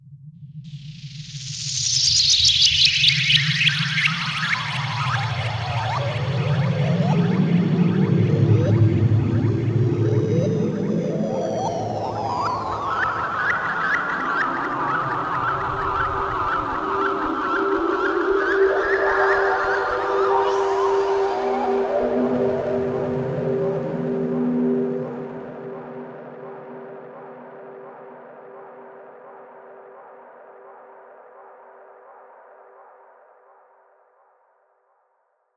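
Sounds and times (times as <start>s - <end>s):
teleport synth effect: 0.8s - 27.9s.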